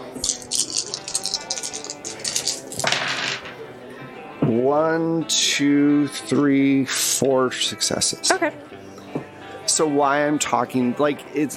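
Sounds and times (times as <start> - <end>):
handful of dice clattering: 0.0 - 3.6
speech: 4.5 - 8.8, 9.8 - 11.5.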